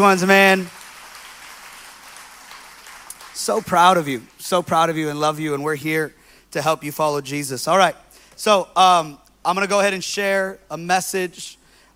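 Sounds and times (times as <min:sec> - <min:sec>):
speech: 0:00.0 - 0:00.8, 0:03.4 - 0:11.6
audience applauding: 0:00.0 - 0:04.1.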